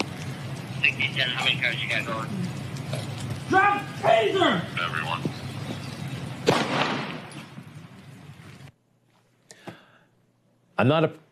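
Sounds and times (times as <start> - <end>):
speech: 0.8 - 5.3, 10.8 - 11.2
gunshot in police camera footage: 6.4 - 7.4.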